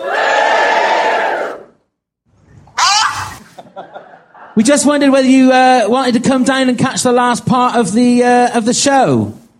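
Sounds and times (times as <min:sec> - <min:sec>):
live crowd cheering and shouting: 0:00.0 - 0:01.8
laughter: 0:02.9 - 0:04.7
speech: 0:04.6 - 0:09.4.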